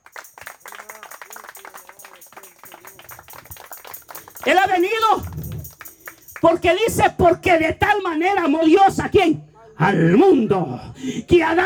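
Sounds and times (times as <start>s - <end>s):
audience applause: 0.0s - 6.4s
voices calling out and cheering: 0.0s - 6.5s
speech: 4.4s - 5.3s, 6.4s - 11.6s.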